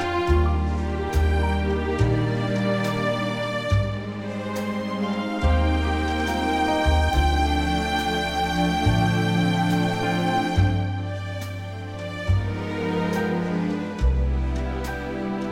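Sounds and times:
orchestral music in C: 0.0 - 15.5.

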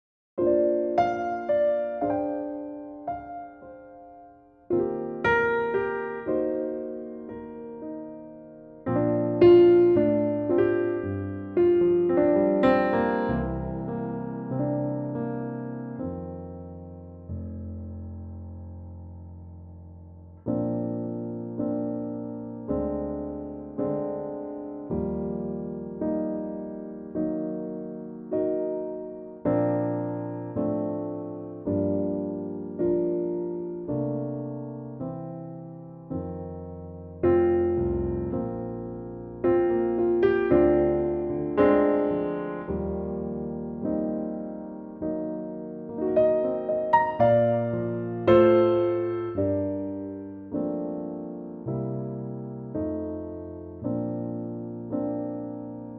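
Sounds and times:
piano in B flat: 0.4 - 55.9.

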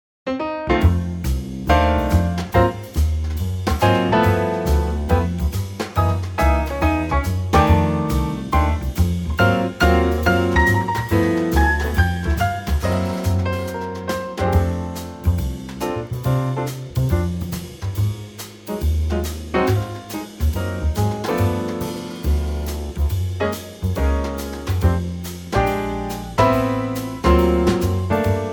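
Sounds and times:
instrumental trio in F: 0.3 - 28.5.

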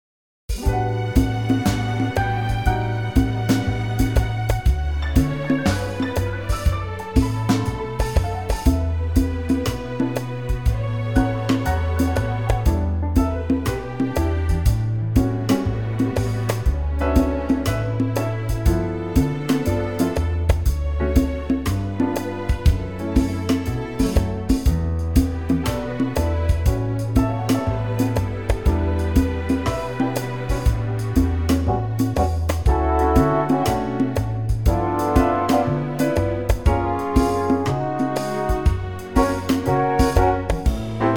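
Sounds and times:
orchestral music in D: 0.5 - 41.1.

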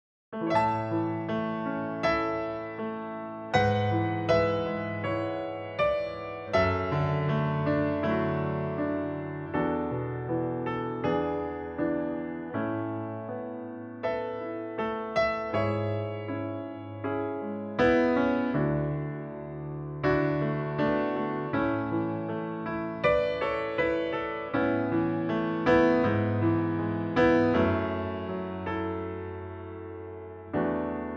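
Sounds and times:
piano: 0.3 - 31.1.

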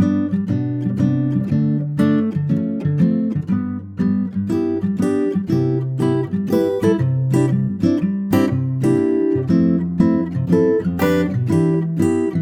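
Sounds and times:
acoustic guitar moving from C to Db: 0.0 - 12.3.

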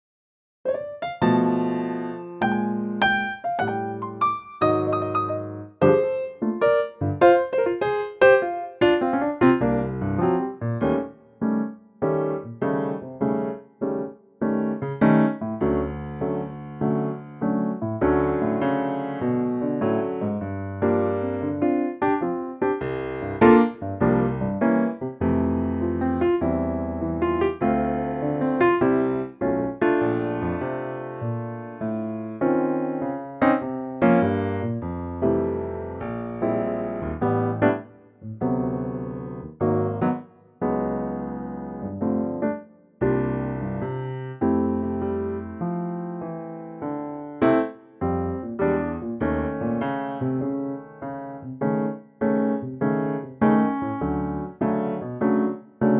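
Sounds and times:
piano track in F: 0.7 - 55.9.

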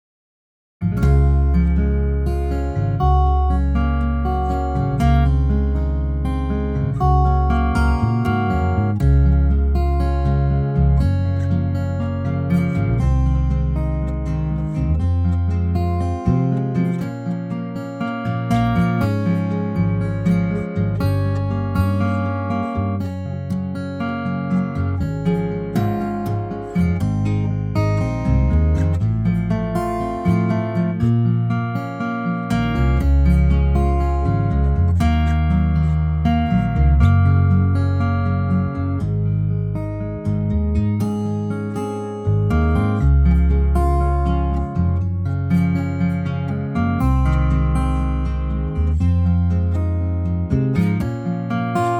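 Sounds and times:
acoustic instrument: 0.8 - 51.9.

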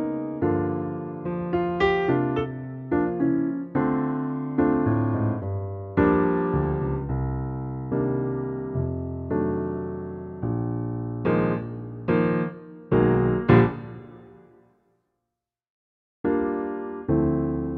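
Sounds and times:
solo piano arrangement of an American standard in B flat: 0.0 - 14.7, 16.2 - 17.7.

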